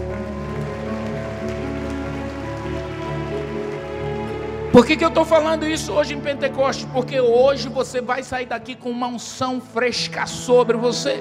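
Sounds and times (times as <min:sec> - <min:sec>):
audience applauding: 0:00.0 - 0:06.0
speech: 0:04.8 - 0:11.1.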